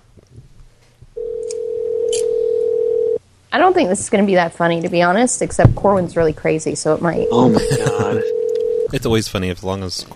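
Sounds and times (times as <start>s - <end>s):
low noise: 0.0s - 10.1s
telephone dial tone before a prank call to a theater: 1.2s - 3.2s, 8.2s - 8.9s
speech: 3.5s - 10.1s
laughter: 7.3s - 8.3s.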